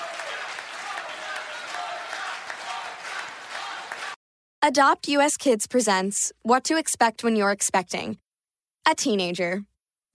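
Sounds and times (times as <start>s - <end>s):
crowd applause for dancers at a salsa show: 0.0s - 4.2s
speech: 4.7s - 8.2s, 8.8s - 10.1s.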